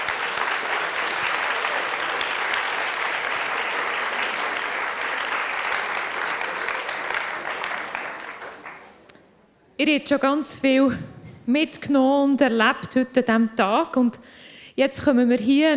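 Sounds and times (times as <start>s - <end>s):
large audience applause: 0.0s - 9.1s
speech: 9.8s - 15.7s.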